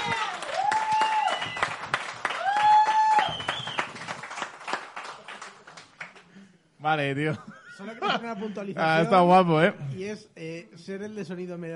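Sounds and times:
wavering tonal whoops: 0.0s - 3.9s
audience clapping: 0.0s - 6.3s
speech: 6.8s - 11.7s.

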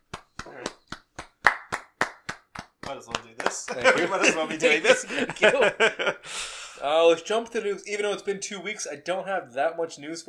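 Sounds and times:
hands clapping: 0.0s - 5.5s
speech: 2.9s - 10.2s
laughter: 3.4s - 6.5s.

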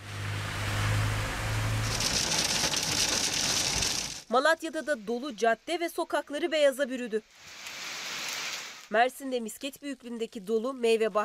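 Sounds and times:
heavy rain falling on the ground in Adana: 0.0s - 4.2s, 7.4s - 8.8s
speech: 4.3s - 7.5s, 8.9s - 11.2s.

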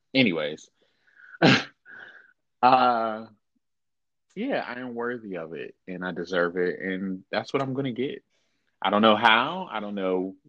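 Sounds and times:
speech: 0.1s - 0.8s, 1.4s - 1.7s, 2.6s - 3.4s, 4.4s - 10.4s
person coughing in the background: 1.4s - 2.1s.

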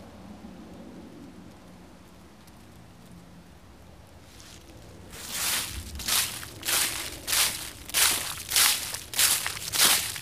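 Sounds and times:
crunchy leaves crunching underfoot: 4.2s - 10.2s.

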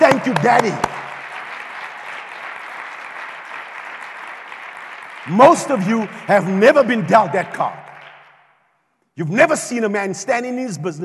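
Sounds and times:
audience applause: 0.0s - 8.3s
speech: 0.2s - 0.9s, 5.3s - 7.8s, 9.2s - 11.0s.

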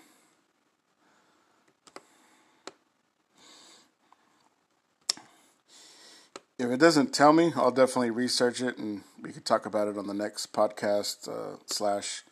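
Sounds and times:
soft breathy noise bursts: 0.0s - 6.6s
computer mouse clicks on a web page: 1.6s - 2.8s
speech: 6.6s - 12.3s.

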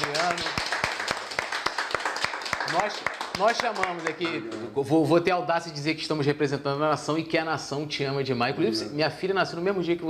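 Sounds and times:
round of applause: 0.0s - 4.4s
speech: 2.7s - 10.0s.

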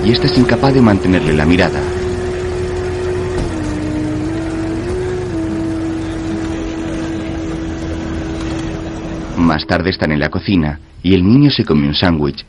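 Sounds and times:
car engine humming as car drives away: 0.0s - 11.0s
speech: 0.1s - 2.0s, 9.4s - 12.4s.

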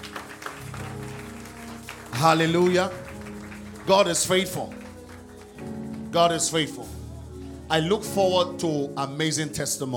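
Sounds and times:
hands clapping: 0.0s - 6.9s
speech: 2.2s - 3.0s, 3.9s - 4.8s, 6.1s - 7.0s, 7.7s - 9.9s.

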